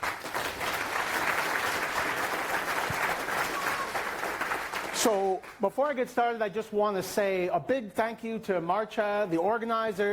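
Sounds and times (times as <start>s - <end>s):
applause: 0.0s - 5.6s
speech: 5.0s - 10.1s.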